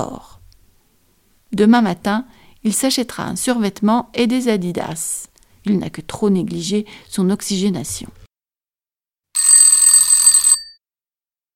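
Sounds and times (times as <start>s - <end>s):
speech: 0.0s - 0.3s, 1.5s - 8.2s
alarm clock ringing: 9.4s - 10.8s.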